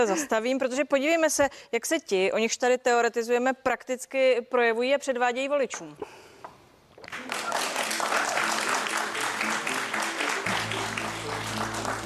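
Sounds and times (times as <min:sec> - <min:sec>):
speech: 0:00.0 - 0:06.2
audience applause: 0:07.0 - 0:12.0.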